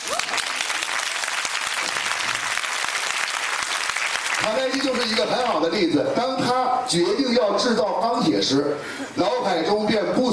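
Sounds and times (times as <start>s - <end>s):
audience applause: 0.0s - 5.6s
speech: 4.4s - 10.3s.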